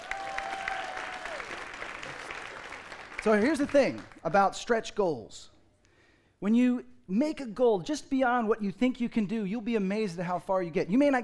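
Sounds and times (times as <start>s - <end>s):
audience applause: 0.0s - 4.2s
speech: 3.2s - 5.5s, 6.4s - 11.2s.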